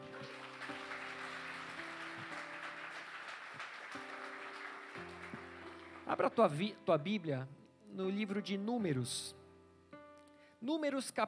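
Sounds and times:
audience applauding: 0.0s - 6.6s
sustained keyboard chords: 0.0s - 10.6s
speech: 6.1s - 9.4s, 10.6s - 11.2s.

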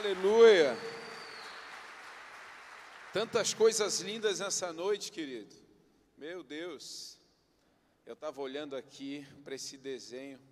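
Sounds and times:
speech: 0.0s - 0.9s, 3.1s - 5.6s, 6.2s - 7.2s, 8.0s - 10.5s
crowd clapping: 0.0s - 4.3s.

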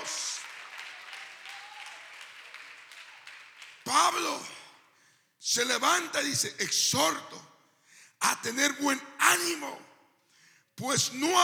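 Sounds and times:
crowd applause: 0.0s - 4.0s
speech: 4.1s - 4.6s, 5.4s - 7.5s, 8.4s - 9.9s, 10.8s - 11.4s.

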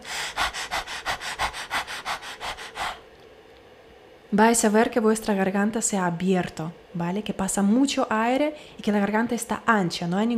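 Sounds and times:
person imitating a dog panting with the tongue out during a vocal warm-up: 0.0s - 3.0s
speech: 4.3s - 10.3s.

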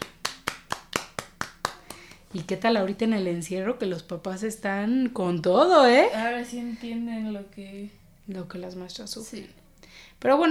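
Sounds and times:
clapping applause: 0.0s - 2.2s
speech: 2.3s - 10.5s.

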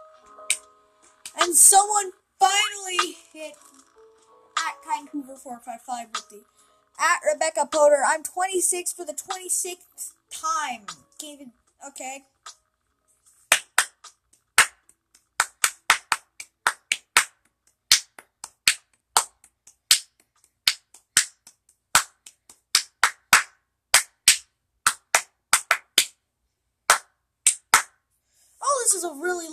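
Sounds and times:
hands clapping: 0.5s - 1.9s, 13.5s - 26.2s, 26.9s - 28.0s
speech: 1.4s - 3.9s, 4.8s - 12.3s, 29.0s - 29.5s.

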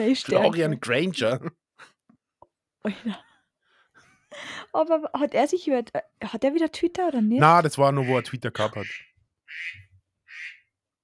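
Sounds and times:
speech: 0.0s - 1.9s, 2.8s - 3.3s, 4.3s - 9.8s
laughter: 0.3s - 1.5s, 8.0s - 8.8s
alarm clock going off with harsh nasal bursts: 8.0s - 10.6s.

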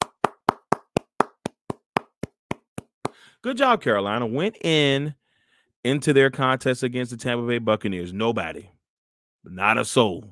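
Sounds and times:
hand clapping: 0.0s - 3.3s
speech: 3.4s - 5.2s, 5.8s - 8.8s, 9.4s - 10.2s.

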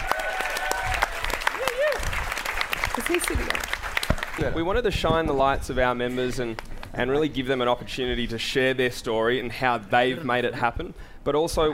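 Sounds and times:
audience applause: 0.0s - 4.6s
speech: 3.0s - 3.8s, 4.4s - 11.7s.

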